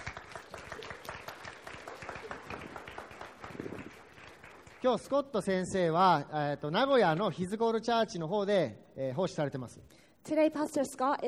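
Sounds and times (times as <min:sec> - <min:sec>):
audience applause: 0:00.0 - 0:05.2
speech: 0:04.8 - 0:11.2.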